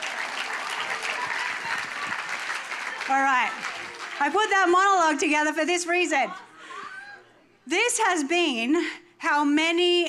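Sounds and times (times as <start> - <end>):
audience applause: 0.0 - 4.5
speech: 3.1 - 6.5, 7.7 - 10.0.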